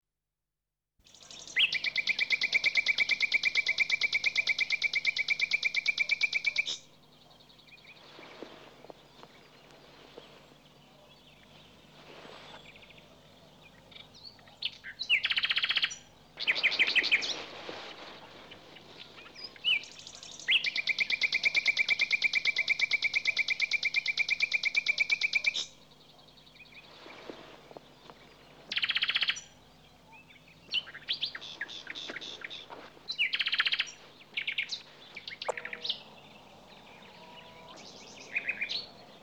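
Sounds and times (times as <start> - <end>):
birds: 1.1 - 39.2.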